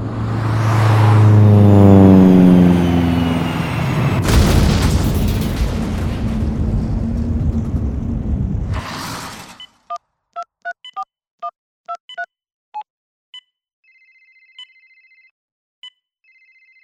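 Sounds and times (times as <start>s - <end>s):
crashing plane engine whine: 0.0s - 4.4s
plane crash explosion: 3.4s - 9.8s.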